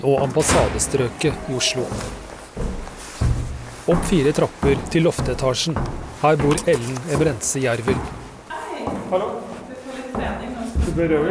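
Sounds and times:
speech: 0:00.0 - 0:02.7, 0:03.9 - 0:08.2, 0:08.8 - 0:09.5, 0:10.2 - 0:11.3
door opening in an old apartment building: 0:00.4 - 0:08.4.

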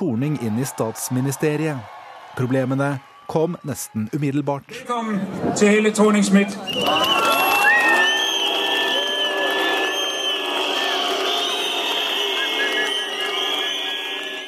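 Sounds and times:
crowd booing at a May Day rally in Aarhus: 0:00.0 - 0:04.2, 0:06.6 - 0:14.4
speech: 0:00.0 - 0:07.5
shrill sustained whistles from crowd: 0:06.6 - 0:14.4.

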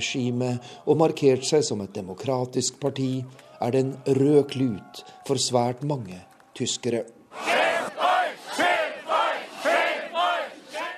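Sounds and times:
speech: 0:00.0 - 0:07.7
demonstrators chanting protest slogans in Erfurt: 0:07.3 - 0:10.9.

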